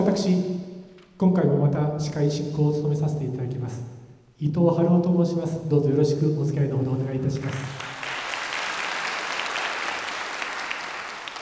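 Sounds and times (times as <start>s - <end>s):
speech: 0.2s - 7.9s
audience applause: 7.7s - 11.4s.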